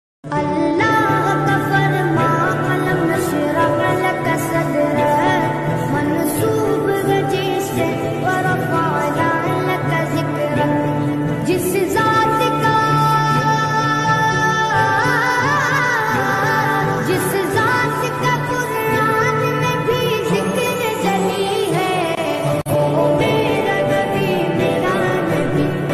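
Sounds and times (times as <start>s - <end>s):
new naat ringtone: 0.3s - 25.9s.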